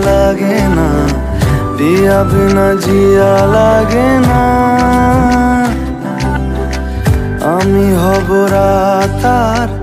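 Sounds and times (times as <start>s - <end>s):
Bengali ringtone: 0.2s - 9.6s.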